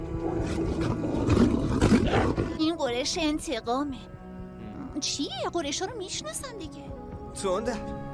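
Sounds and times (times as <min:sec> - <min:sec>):
deep rumbling animal roar: 0:00.1 - 0:02.5
speech: 0:02.1 - 0:04.2, 0:05.0 - 0:08.1.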